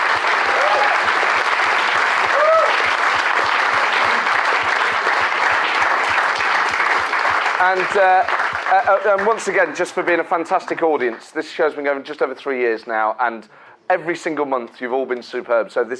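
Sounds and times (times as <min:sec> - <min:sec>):
theatre audience applause: 0:00.0 - 0:10.5
whoops and cheers: 0:00.4 - 0:01.2, 0:02.2 - 0:03.0
speech: 0:07.6 - 0:15.9.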